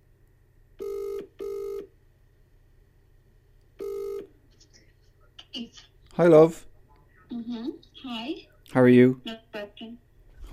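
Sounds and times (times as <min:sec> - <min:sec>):
telephone ringing through a speakerphone: 0:00.8 - 0:01.9, 0:03.8 - 0:04.3
speech: 0:05.6 - 0:06.7, 0:08.7 - 0:09.4.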